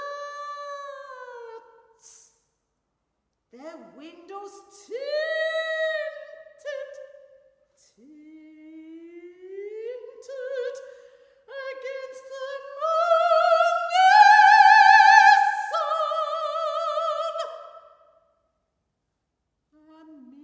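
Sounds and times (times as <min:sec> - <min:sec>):
solo soprano singing: 0:03.6 - 0:07.2, 0:07.8 - 0:17.9, 0:19.8 - 0:20.4.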